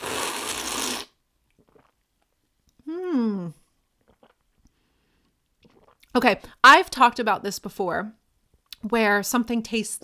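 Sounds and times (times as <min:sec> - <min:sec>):
sip of Spindrift Blood Orange Tangerine sparkling water: 0:00.0 - 0:02.0, 0:05.2 - 0:06.1
speech: 0:06.2 - 0:08.2, 0:08.8 - 0:10.0.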